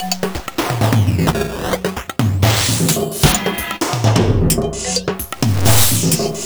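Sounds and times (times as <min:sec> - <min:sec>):
industrial music loop: 0:00.0 - 0:06.4.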